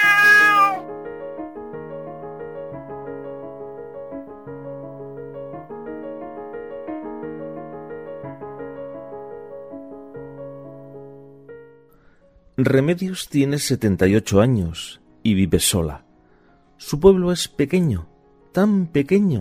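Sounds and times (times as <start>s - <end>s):
cat meowing: 0.0s - 0.8s
speech: 12.6s - 16.0s, 16.8s - 19.3s.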